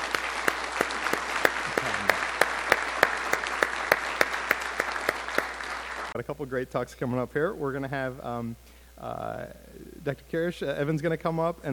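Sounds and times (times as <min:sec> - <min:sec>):
round of applause: 0:00.0 - 0:06.2
speech: 0:06.2 - 0:11.7.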